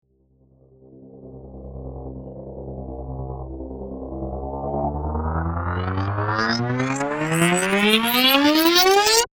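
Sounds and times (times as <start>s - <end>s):
synthetic swell: 3.1s - 9.3s.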